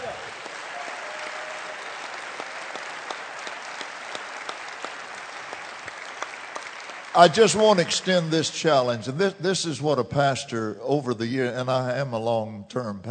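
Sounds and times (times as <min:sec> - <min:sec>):
audience clapping hands: 0:00.0 - 0:08.4
speech: 0:07.2 - 0:13.0.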